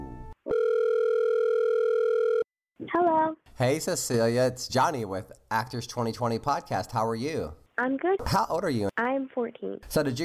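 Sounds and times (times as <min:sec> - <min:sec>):
telephone line tone while a guest is being called: 0:00.5 - 0:02.5
speech: 0:03.0 - 0:10.2.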